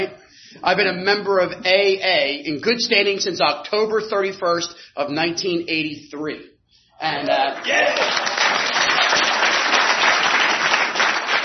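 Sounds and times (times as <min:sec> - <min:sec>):
speech: 0:00.0 - 0:09.3
audience applause at a recovery meeting: 0:07.5 - 0:11.4.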